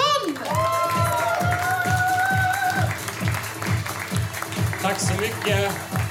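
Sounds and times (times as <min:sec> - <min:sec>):
audience applause: 0:00.2 - 0:06.0
whoops and cheers: 0:00.3 - 0:03.0
people shouting: 0:00.5 - 0:02.9
speech: 0:05.0 - 0:06.0.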